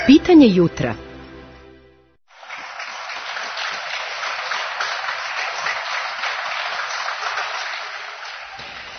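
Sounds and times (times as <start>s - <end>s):
speech: 0.1s - 1.1s
applause in support of doctors: 2.3s - 8.9s.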